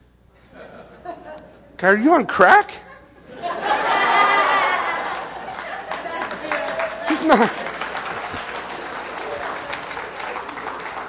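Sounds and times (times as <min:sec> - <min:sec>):
laughter: 0:00.4 - 0:01.7, 0:02.8 - 0:11.0
speech: 0:01.8 - 0:02.8, 0:07.2 - 0:07.6
crowd clapping: 0:04.1 - 0:11.0.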